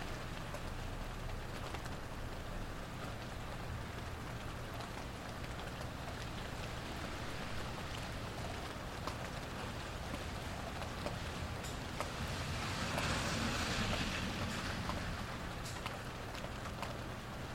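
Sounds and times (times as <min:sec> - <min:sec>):
early summer rainstorm in Mount Vernon, NY: 0:00.0 - 0:17.5
car passing: 0:11.4 - 0:16.0.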